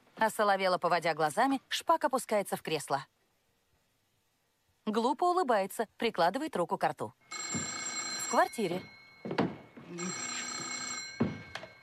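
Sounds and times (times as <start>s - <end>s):
speech: 0.2s - 3.2s, 4.8s - 7.6s, 8.3s - 10.2s
telephone ringing: 7.2s - 11.8s.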